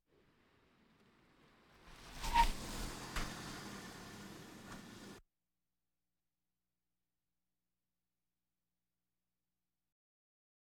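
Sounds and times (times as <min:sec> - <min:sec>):
various automobiles: 0:00.1 - 0:05.2.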